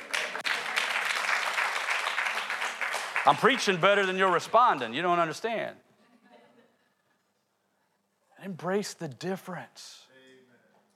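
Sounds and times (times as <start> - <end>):
church audience applause: 0.0 - 4.9
speech: 3.2 - 5.8, 8.5 - 10.1.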